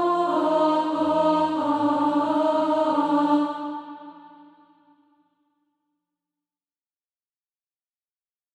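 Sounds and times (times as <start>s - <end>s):
alto voice singing SATB practice music: 0.0s - 4.7s.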